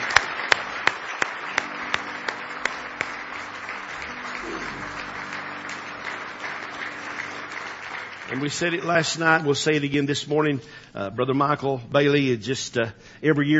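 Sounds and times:
sharp rhythmic claps: 0.0s - 9.4s
large audience applauding in praise: 0.0s - 9.6s
speech: 8.3s - 13.5s.

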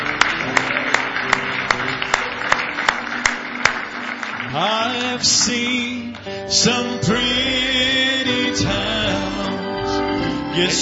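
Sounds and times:
audience hand clapping: 0.0s - 6.3s
speech: 4.6s - 9.4s, 10.6s - 10.8s.

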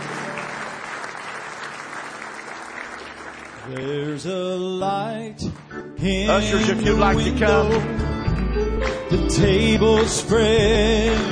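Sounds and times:
congregation clapping hands in praise at a church service: 0.0s - 4.5s, 8.8s - 11.3s
speech: 3.7s - 8.1s, 9.1s - 11.3s.

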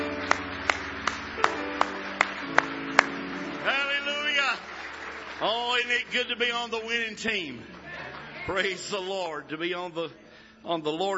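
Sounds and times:
audience hand clapping: 0.0s - 8.7s
speech: 5.4s - 7.8s, 8.5s - 11.1s.

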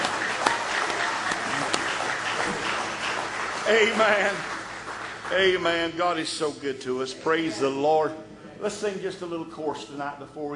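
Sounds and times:
crowd clapping: 0.0s - 6.6s
speech: 3.7s - 4.5s, 5.3s - 10.5s.

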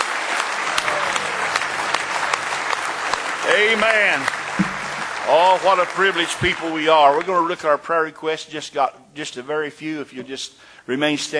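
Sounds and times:
audience clapping hands: 0.0s - 7.7s
speech: 3.5s - 4.4s, 5.3s - 11.3s.

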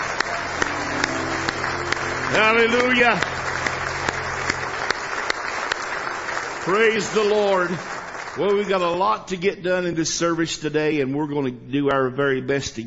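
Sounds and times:
audience hand clapping: 0.0s - 9.2s
speech: 2.3s - 3.4s, 6.6s - 12.8s.

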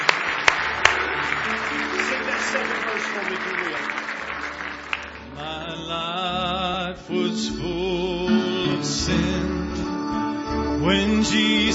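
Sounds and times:
audience hand clapping: 0.0s - 5.8s
speech: 3.2s - 4.0s, 5.4s - 9.6s, 10.8s - 11.7s.

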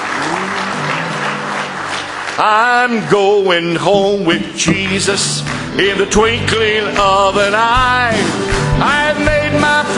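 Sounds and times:
congregation clapping hands in praise at a church service: 0.0s - 9.9s
speech: 2.4s - 9.9s.

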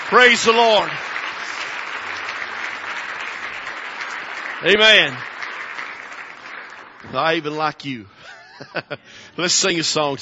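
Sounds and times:
audience hand clapping: 0.0s - 7.4s
speech: 0.1s - 1.2s, 4.6s - 5.3s, 7.0s - 10.1s
laughter: 8.2s - 9.2s.

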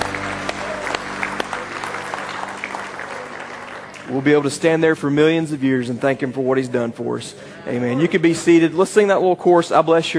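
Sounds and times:
audience clapping in praise: 0.0s - 5.1s
low sustained organ or keyboard chords: 0.0s - 6.4s
speech: 4.1s - 10.1s.

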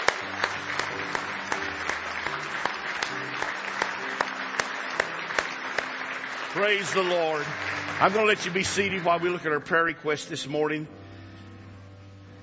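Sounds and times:
audience clapping: 0.0s - 9.9s
speech: 6.6s - 11.0s.

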